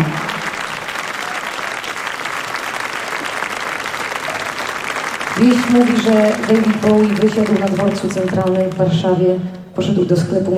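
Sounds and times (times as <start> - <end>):
audience applause: 0.0 - 9.0
speech: 5.5 - 10.5.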